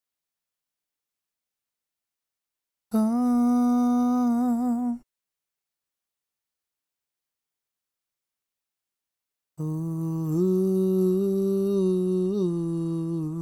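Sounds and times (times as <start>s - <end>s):
backing vocals: 3.0s - 5.0s, 9.6s - 13.4s.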